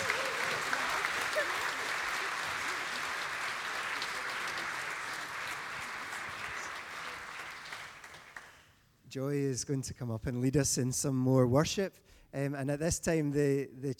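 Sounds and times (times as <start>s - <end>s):
cheers: 0.0s - 7.8s
audience clapping: 0.0s - 8.8s
speech: 9.2s - 13.9s.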